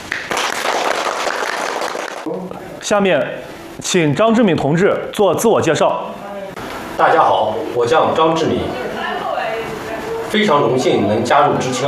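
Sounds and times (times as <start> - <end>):
applause from a gathered duty team: 0.0 - 2.3
speech: 2.3 - 6.2, 7.0 - 8.9, 10.3 - 11.8.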